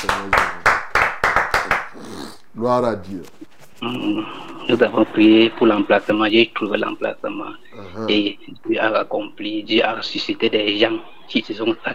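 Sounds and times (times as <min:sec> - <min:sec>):
church congregation clapping in acclaim: 0:00.0 - 0:02.0
speech: 0:02.6 - 0:11.9.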